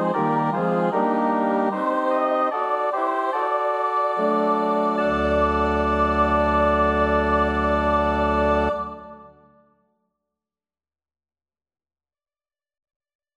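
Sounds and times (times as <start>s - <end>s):
MIDI soprano canticle melody: 0.0s - 9.5s.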